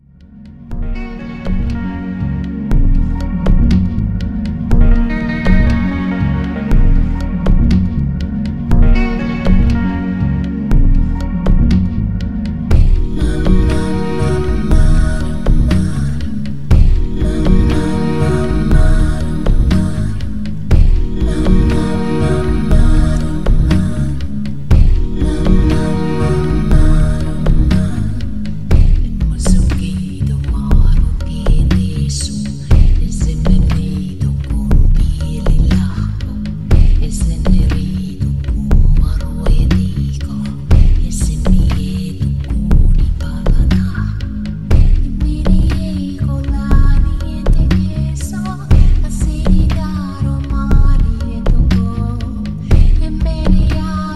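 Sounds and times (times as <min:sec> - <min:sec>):
music beat: 0:00.2 - 0:54.1.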